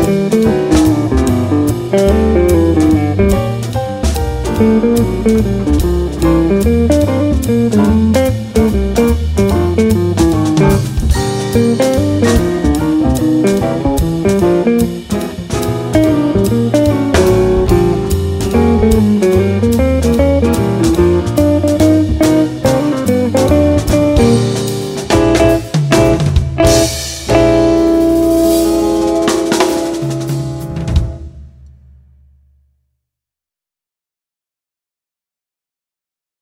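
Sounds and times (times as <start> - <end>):
music with soloist: 0.0 - 32.2.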